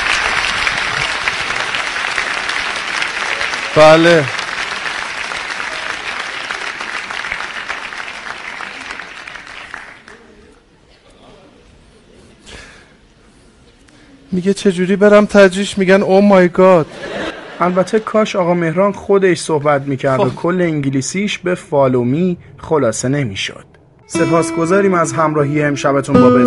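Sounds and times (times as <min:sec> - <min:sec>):
audience applause: 0:00.0 - 0:10.4
speech: 0:03.8 - 0:04.4, 0:14.3 - 0:26.4
laughter: 0:16.8 - 0:18.2.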